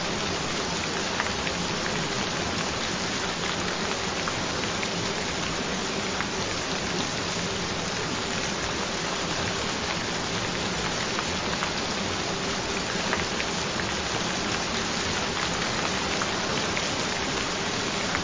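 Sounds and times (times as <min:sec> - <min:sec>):
rain: 0:00.0 - 0:18.2.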